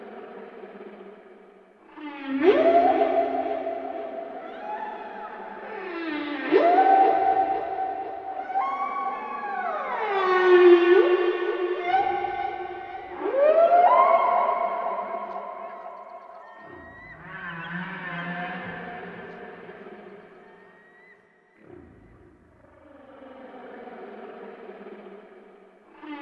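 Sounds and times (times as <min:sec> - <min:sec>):
whale song: 0:00.8 - 0:26.2.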